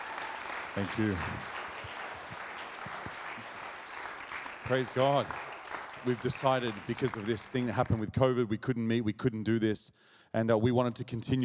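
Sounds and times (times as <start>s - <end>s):
audience applause: 0.0s - 8.0s
speech: 0.8s - 1.6s, 4.7s - 11.4s.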